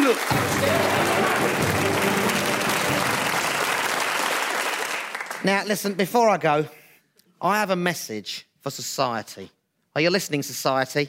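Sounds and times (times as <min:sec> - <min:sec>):
crowd applauding: 0:00.0 - 0:05.5
speech: 0:00.1 - 0:00.7, 0:05.4 - 0:06.8, 0:07.4 - 0:11.0.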